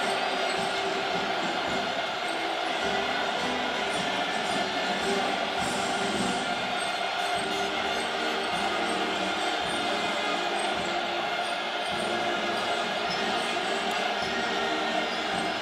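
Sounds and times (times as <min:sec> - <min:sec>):
football match crowd singing a national anthem: 0:00.0 - 0:15.5.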